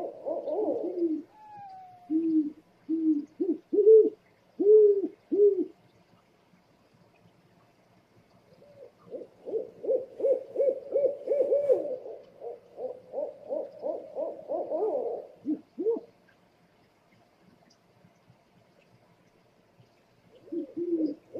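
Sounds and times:
scops owl hooting: 0.0s - 5.7s, 8.6s - 16.1s, 20.4s - 21.3s.

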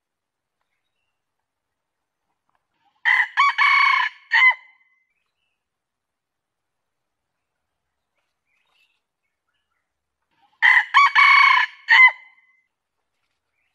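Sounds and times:
junglefowl crowing: 3.0s - 4.7s, 10.6s - 12.3s.

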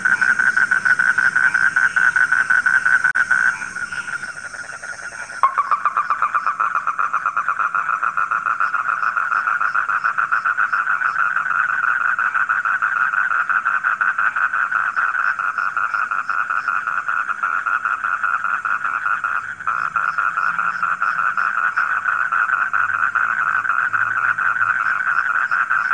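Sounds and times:
frogs croaking in chorus: 0.0s - 25.9s
faint high chirps: 5.1s - 6.4s.

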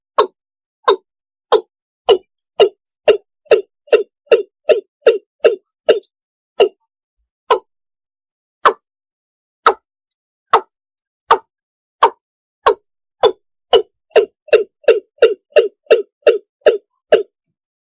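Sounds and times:
frog knocking calls: 0.2s - 6.8s, 7.5s - 7.7s, 11.3s - 17.3s.

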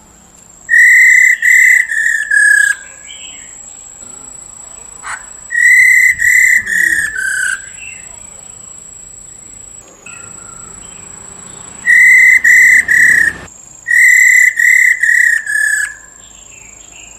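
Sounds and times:
Black-throated laughingthrush whistling: 0.7s - 2.9s, 5.0s - 8.1s, 9.2s - 16.0s.

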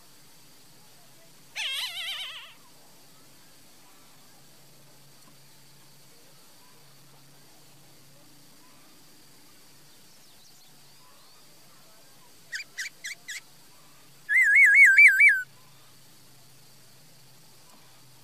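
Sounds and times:
laughingthrush song: 14.3s - 15.5s.

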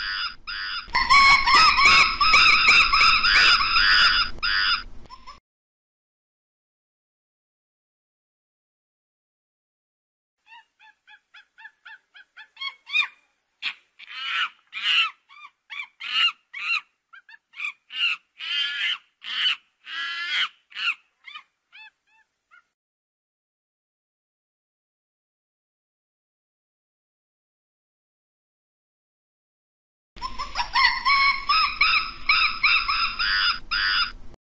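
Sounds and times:
monkey screaming calls: 0.0s - 5.4s, 10.5s - 22.7s, 30.2s - 34.2s.

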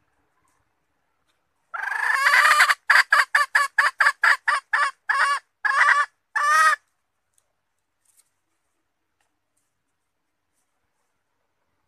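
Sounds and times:
Red junglefowl hen calling and clucking: 0.0s - 7.0s.

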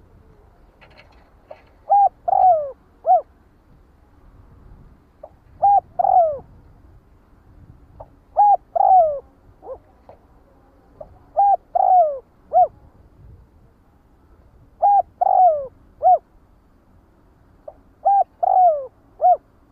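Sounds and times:
spotted dove cooing: 0.0s - 3.3s, 5.2s - 6.6s, 8.0s - 12.9s, 14.8s - 16.3s, 17.6s - 19.5s.

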